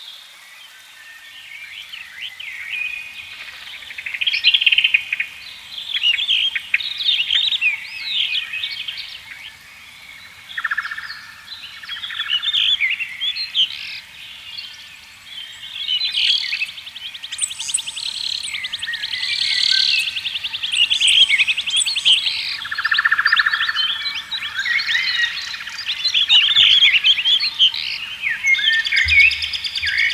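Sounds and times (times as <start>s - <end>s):
birds in a forest canopy: 0.4s - 30.1s.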